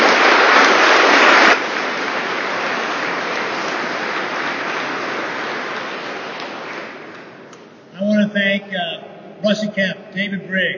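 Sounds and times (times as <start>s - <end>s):
audience applause: 0.0s - 7.5s
speech: 9.4s - 10.7s.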